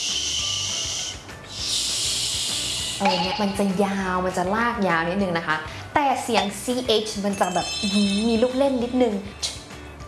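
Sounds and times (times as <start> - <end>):
air hissed out between the teeth: 0.0 - 3.4
speech: 3.0 - 9.4.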